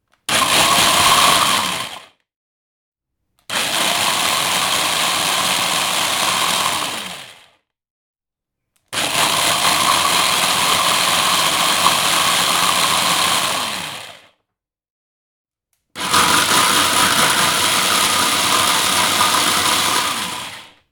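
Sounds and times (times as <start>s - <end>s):
blenders: 0.2s - 2.2s, 3.5s - 7.6s, 8.9s - 14.4s, 16.0s - 20.8s.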